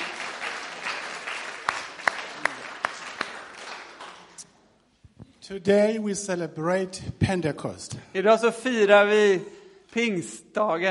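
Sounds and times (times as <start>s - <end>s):
audience clapping hands: 0.0s - 4.7s
speech: 5.5s - 10.8s.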